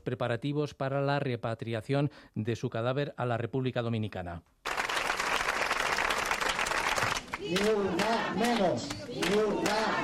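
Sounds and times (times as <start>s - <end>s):
speech: 0.1s - 4.6s, 7.4s - 10.0s
crowd applause at a vigil: 4.6s - 10.0s
crowd shouting against violence at a vigil: 7.3s - 10.0s.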